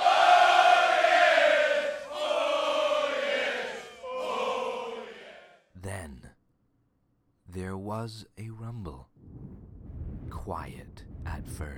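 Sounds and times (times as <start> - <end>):
army shouting battle cries: 0.0 - 5.6
speech: 7.6 - 9.1, 10.4 - 11.7.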